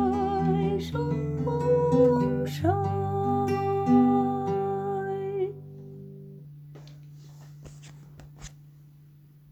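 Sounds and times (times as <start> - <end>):
Upper Silesian folk song: 0.0 - 6.1.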